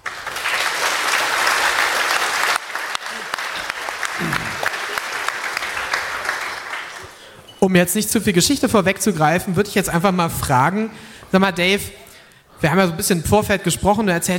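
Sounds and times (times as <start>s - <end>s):
audience applause: 0.0s - 7.3s
speech: 7.6s - 12.0s, 12.6s - 14.3s.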